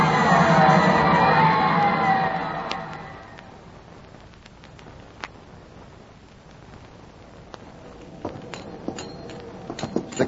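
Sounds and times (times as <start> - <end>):
boxing crowd roaring and cheering a knockout: 0.0 - 3.7
scattered sharp clinks and clicks: 8.4 - 10.2.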